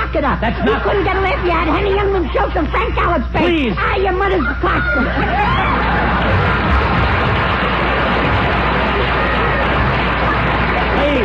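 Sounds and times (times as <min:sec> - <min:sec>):
speech: 0:00.1 - 0:06.1
laughter: 0:00.4 - 0:02.9, 0:04.1 - 0:11.2
audience applause and cheering: 0:05.0 - 0:11.2.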